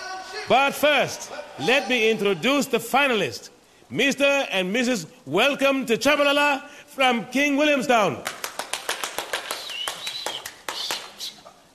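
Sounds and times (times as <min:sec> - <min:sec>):
speech: 0:00.5 - 0:08.4
spectators clapping hands at the finals of a 1950 ballroom dancing championship: 0:08.2 - 0:11.5.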